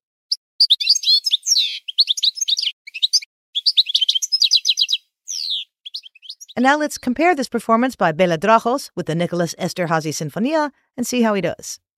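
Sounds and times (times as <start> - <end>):
European goldfinch singing: 0.6 - 7.2
speech: 6.6 - 11.8.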